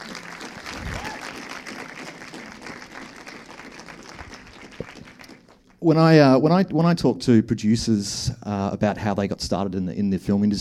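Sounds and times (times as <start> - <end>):
audience applause at a film club discussion event welcoming three guests: 0.0 - 5.8
speech: 5.8 - 10.5.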